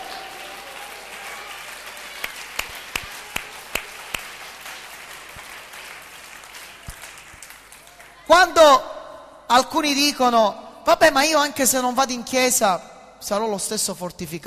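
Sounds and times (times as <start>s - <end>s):
audience applauding in a large room: 0.0s - 8.3s
speech: 8.3s - 8.9s, 9.5s - 14.4s.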